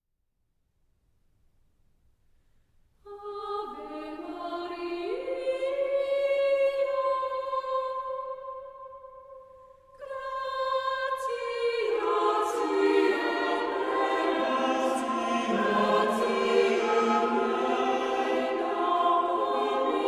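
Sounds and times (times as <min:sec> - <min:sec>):
chamber choir singing: 0:03.1 - 0:08.7, 0:10.0 - 0:20.0.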